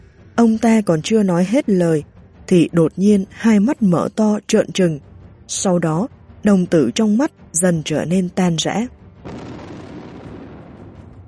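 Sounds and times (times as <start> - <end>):
speech: 0.4 - 9.4
violent explosion of a man's body: 9.3 - 11.2.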